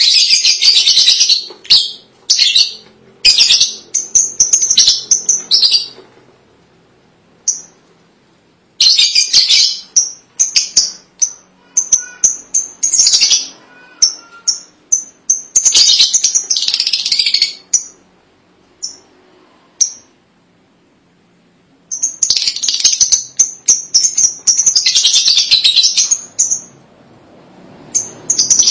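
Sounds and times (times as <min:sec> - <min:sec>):
lovebird chatter: 0:00.0 - 0:06.0, 0:08.8 - 0:18.0, 0:21.9 - 0:26.8, 0:27.9 - 0:28.6.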